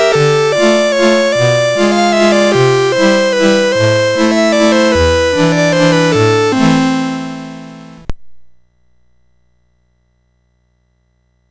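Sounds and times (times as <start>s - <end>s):
waltz on MOS6581R4 sound chip: 0.0s - 8.1s.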